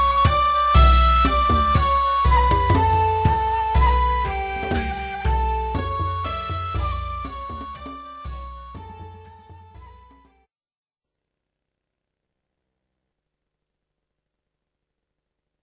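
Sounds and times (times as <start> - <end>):
music excerpt: 0.0 - 10.4.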